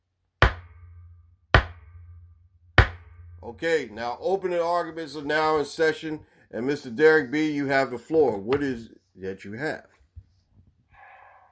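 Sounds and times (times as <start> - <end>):
gavel banging: 0.4 - 4.8
speech: 3.4 - 9.9.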